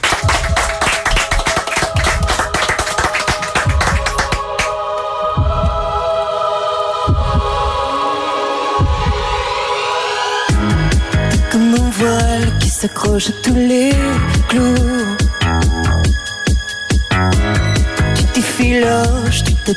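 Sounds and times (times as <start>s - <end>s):
audience applause: 0.0s - 5.1s
music with sustained tones: 0.0s - 19.7s
speech: 12.8s - 15.0s.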